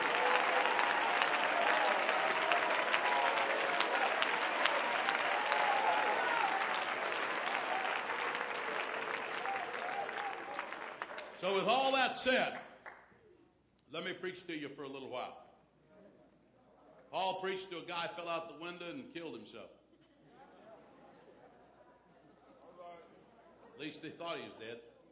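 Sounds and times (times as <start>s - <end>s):
audience clapping loudly: 0.0s - 13.1s
speech: 11.4s - 12.6s, 13.9s - 15.4s, 17.2s - 19.8s, 24.0s - 24.9s.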